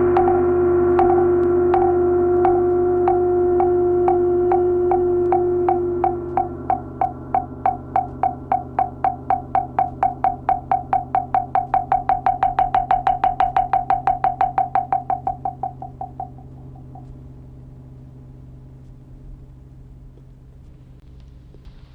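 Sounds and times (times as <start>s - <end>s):
wooden fish knocking: 0.2s - 17.1s.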